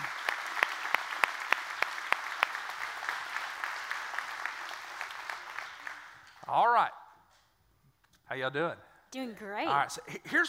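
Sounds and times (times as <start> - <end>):
church congregation applauding guests during a service: 0.0 - 6.5
speech: 8.4 - 10.4.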